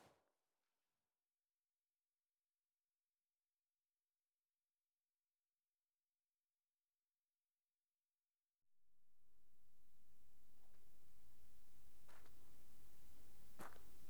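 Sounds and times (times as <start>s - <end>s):
torpedo propeller turning in a cave at a naval base: 9.0s - 14.0s.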